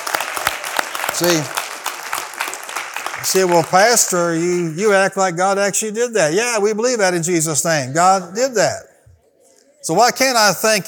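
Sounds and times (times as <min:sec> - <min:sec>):
audience hand clapping: 0:00.0 - 0:05.0
speech: 0:01.2 - 0:01.6, 0:03.2 - 0:08.9, 0:09.8 - 0:10.8.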